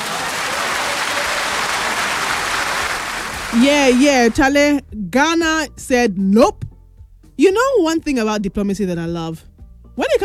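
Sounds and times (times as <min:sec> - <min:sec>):
round of applause: 0:00.0 - 0:04.2
speech: 0:03.5 - 0:06.7, 0:07.4 - 0:10.2.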